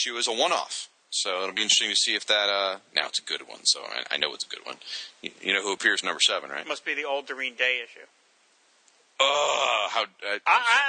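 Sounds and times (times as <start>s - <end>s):
speech: 0.0s - 8.2s, 9.2s - 10.8s
person groaning: 9.2s - 10.8s.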